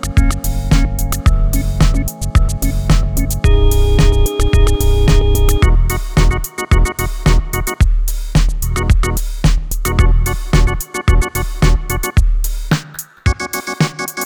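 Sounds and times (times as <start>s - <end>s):
707 drum machine snare: 0.0s - 14.2s.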